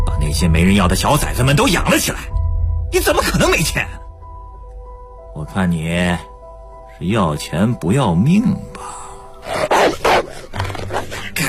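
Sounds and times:
speech: 0.3 - 4.0, 5.4 - 6.3, 7.0 - 9.0
dog growling and barking: 9.4 - 11.4.

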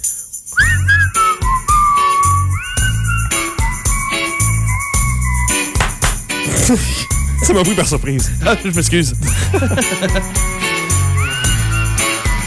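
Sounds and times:
loud bouncy backing track of low thumps and bright percussive hits: 0.0 - 12.4
person whistling a melody with gliding, wavering notes: 0.5 - 5.8, 6.5 - 7.7, 10.9 - 12.4
laughter: 6.5 - 10.5
speech: 6.7 - 10.6.

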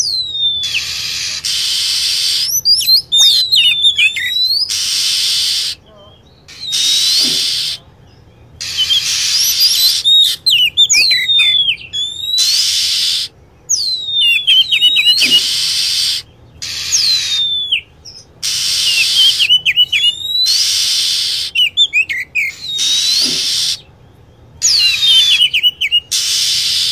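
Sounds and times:
lovebird calls: 0.0 - 26.9.

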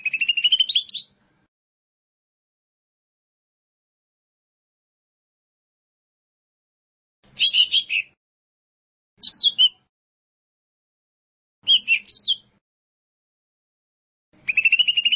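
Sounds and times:
bird song: 0.0 - 1.2, 7.2 - 8.2, 9.2 - 9.9, 11.6 - 12.6, 14.4 - 15.1.

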